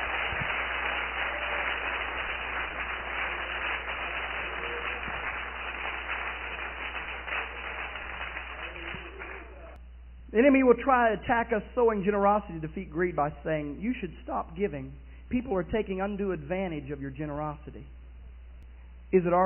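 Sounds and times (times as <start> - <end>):
audience clapping hands: 0.0 - 9.8
speech: 10.3 - 18.0, 19.1 - 19.4.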